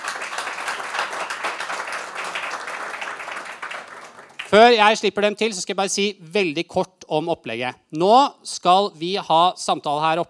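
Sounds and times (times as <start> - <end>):
audience applause: 0.0 - 4.8
speech: 4.5 - 10.2.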